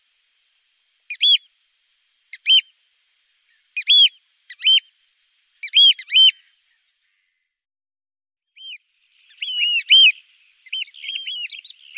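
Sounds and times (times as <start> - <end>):
Eurasian oystercatcher piping: 1.1 - 1.5, 2.3 - 2.7, 3.5 - 4.9, 5.6 - 6.6, 8.6 - 11.9.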